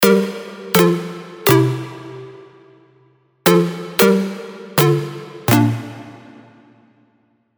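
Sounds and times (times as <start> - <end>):
plucked synth: 0.0 - 2.7, 3.5 - 6.7.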